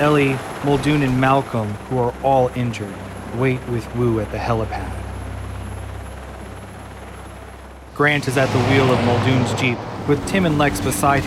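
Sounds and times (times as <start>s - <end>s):
speech: 0.0s - 5.0s, 8.0s - 11.2s
Coast Guard helicopter rotor blades chopping: 0.0s - 11.2s
helicopter engine and rushing air roar: 0.0s - 11.2s.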